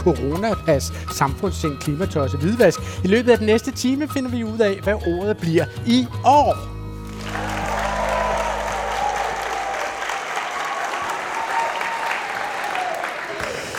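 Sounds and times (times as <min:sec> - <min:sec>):
speech: 0:00.0 - 0:06.7
low hum: 0:06.7 - 0:10.1
large audience applauding at Sankt Knuds Gymnasium in Odense: 0:07.0 - 0:13.7.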